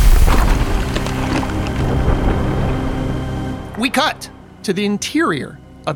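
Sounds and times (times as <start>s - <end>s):
heavy thunder strike rumbling: 0.0s - 4.7s
speech: 3.8s - 5.9s.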